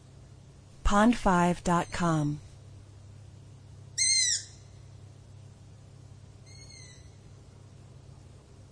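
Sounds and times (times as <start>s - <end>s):
speech: 0.9s - 2.4s
owl screaming: 4.0s - 4.8s, 6.4s - 7.2s.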